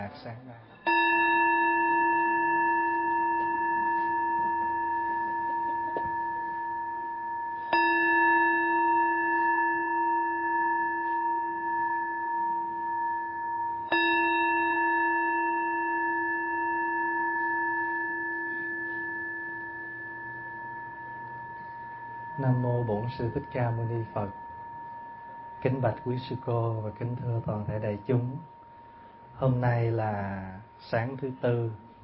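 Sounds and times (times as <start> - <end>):
speech: 0.1 - 0.9, 22.5 - 24.4, 25.6 - 28.5, 29.4 - 32.0
temple bell struck: 0.7 - 32.0.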